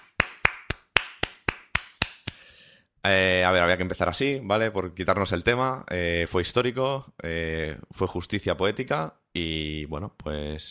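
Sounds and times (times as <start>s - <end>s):
studio hand claps: 0.0s - 2.5s
speech: 3.0s - 10.6s.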